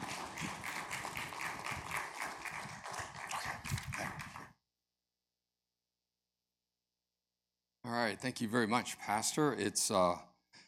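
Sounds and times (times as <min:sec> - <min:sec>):
audience applause: 0:00.0 - 0:04.4
speech: 0:07.9 - 0:10.3.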